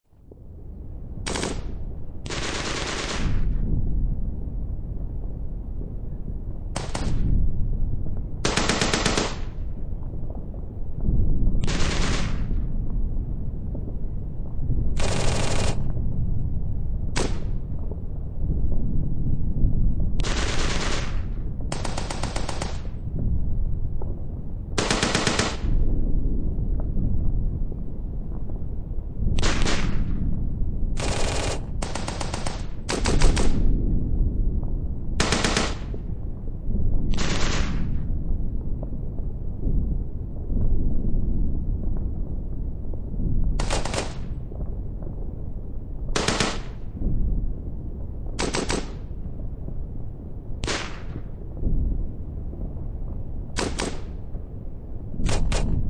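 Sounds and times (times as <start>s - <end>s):
distant battlefield explosions: 0.3s - 55.8s
World War Two battlefield gunshots: 1.3s - 3.6s, 6.8s - 7.3s, 8.4s - 9.6s, 11.6s - 12.6s, 15.0s - 15.9s, 17.2s - 17.5s, 20.2s - 23.0s, 24.8s - 25.8s, 29.4s - 30.1s, 31.0s - 33.6s, 35.2s - 36.0s, 37.1s - 38.0s, 43.6s - 44.3s, 46.2s - 46.8s, 48.4s - 49.1s, 50.6s - 51.3s, 53.6s - 54.2s, 55.2s - 55.8s.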